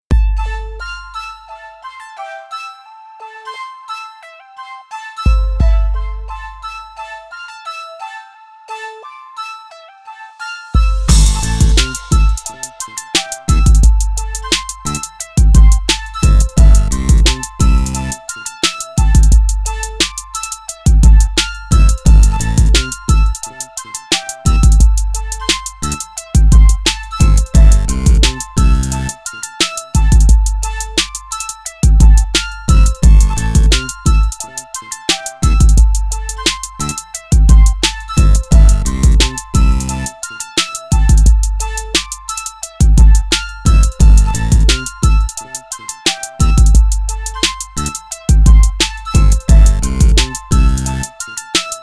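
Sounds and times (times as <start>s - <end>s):
flute: 0.1s - 51.8s.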